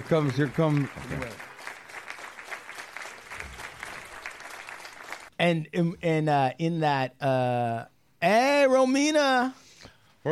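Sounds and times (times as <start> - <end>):
studio audience applause: 0.0 - 5.3
speech: 0.1 - 1.5, 5.4 - 9.6.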